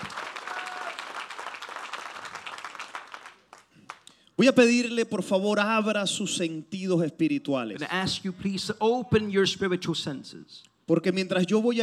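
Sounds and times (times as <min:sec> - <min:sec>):
audience applauding: 0:00.0 - 0:04.1
speech: 0:04.4 - 0:11.8.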